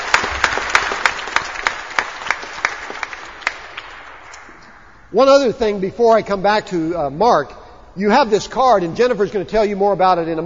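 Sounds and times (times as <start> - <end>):
audience applause: 0.0 - 4.2
speech: 5.1 - 10.4.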